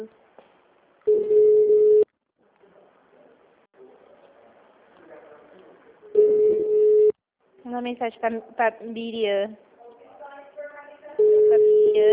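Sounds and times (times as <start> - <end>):
telephone ringback tone while placing a call: 1.1 - 2.1, 6.2 - 7.1, 11.2 - 12.1
speech: 7.8 - 9.7.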